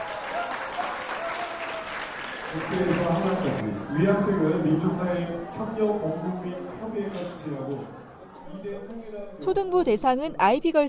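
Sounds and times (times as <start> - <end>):
audience applause at a student debate contest award ceremony: 0.0 - 3.8
speech: 2.5 - 10.8.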